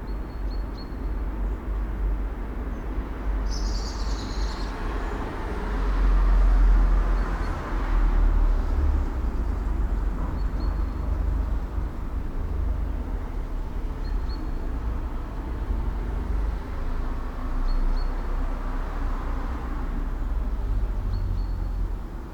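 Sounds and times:
suburban traffic: 0.0 - 22.3.

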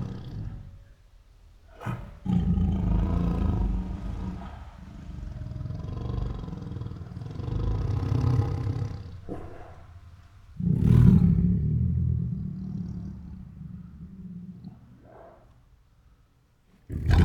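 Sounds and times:
tiger growling: 0.0 - 0.9, 1.7 - 15.8, 16.8 - 17.2.

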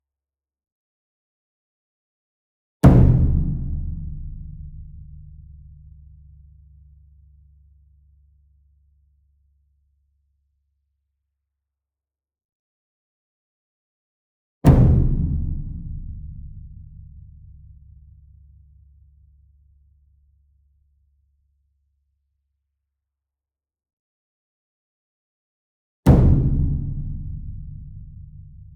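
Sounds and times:
concert bass drum and taiko ensemble drum hit: 2.8 - 4.9, 14.7 - 17.2, 26.1 - 28.6.

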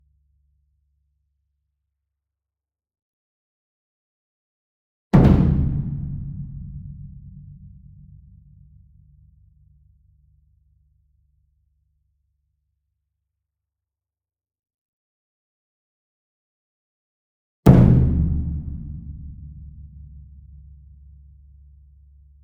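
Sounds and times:
ensemble concert bass drum: 5.2 - 7.9, 17.7 - 20.1
medium taiko drum flam: 5.2 - 8.3, 17.7 - 20.4.

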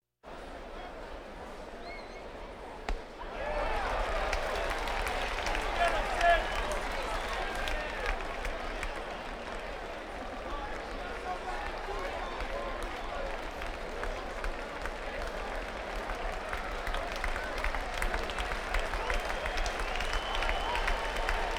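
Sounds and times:
crowds: 0.3 - 21.5.

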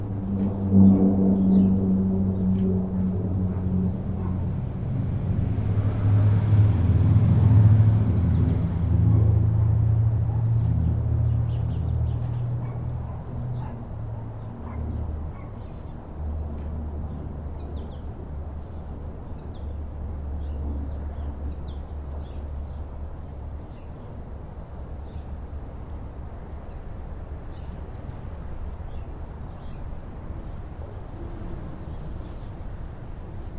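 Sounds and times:
traffic: 0.0 - 33.5
dogs: 4.2 - 4.4, 9.1 - 10.6, 12.6 - 15.6
residential birds: 10.2 - 24.2, 27.5 - 33.5.

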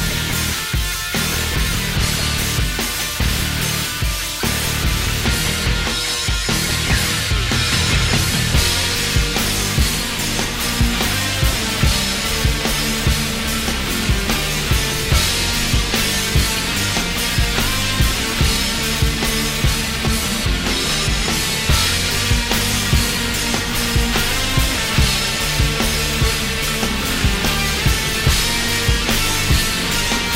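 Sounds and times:
hard rock music: 0.0 - 30.3.

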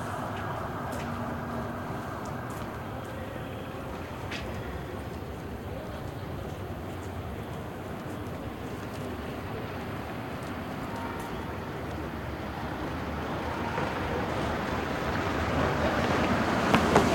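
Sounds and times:
medium midday city traffic: 0.0 - 17.1.

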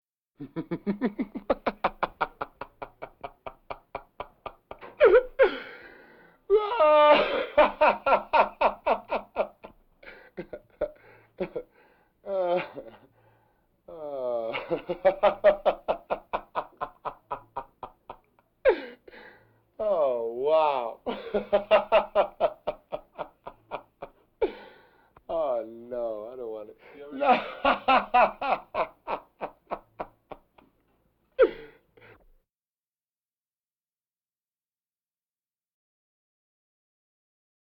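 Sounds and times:
laughter: 0.4 - 5.8, 6.9 - 11.7, 14.0 - 18.8, 20.0 - 24.6, 27.0 - 30.7
breathing vocal effects: 5.5 - 6.5.

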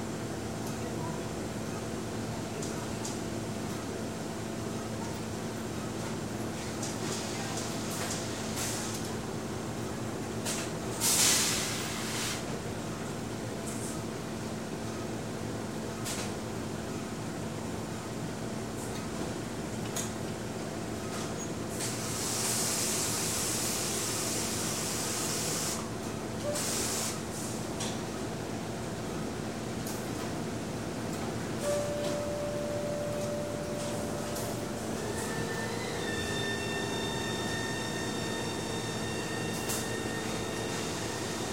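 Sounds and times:
dry cleaning plant general ambience: 0.1 - 41.5.

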